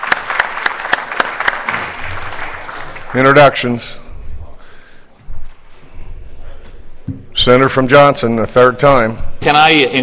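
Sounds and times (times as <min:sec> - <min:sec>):
clapping in the Missouri Senate chamber: 0:00.0 - 0:03.2
room noise: 0:00.0 - 0:10.0
speech: 0:03.1 - 0:04.0, 0:07.4 - 0:10.0.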